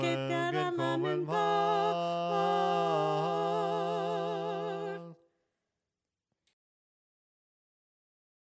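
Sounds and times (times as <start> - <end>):
soprano singing hymns: 0.0 - 5.2.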